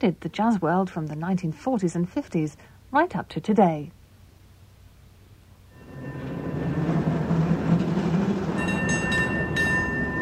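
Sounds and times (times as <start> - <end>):
speech: 0.0 - 4.0
San Francisco cable car bells dinging: 5.8 - 10.2.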